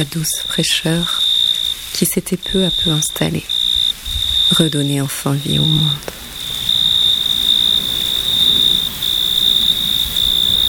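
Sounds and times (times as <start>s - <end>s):
speech: 0.0s - 3.6s, 4.6s - 6.3s
crickets chirping by rubbing wings: 0.0s - 10.6s.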